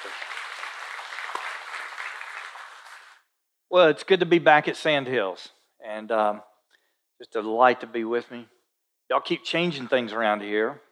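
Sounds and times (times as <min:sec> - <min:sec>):
audience applause: 0:00.0 - 0:03.2
speech: 0:03.7 - 0:06.5, 0:07.2 - 0:10.8.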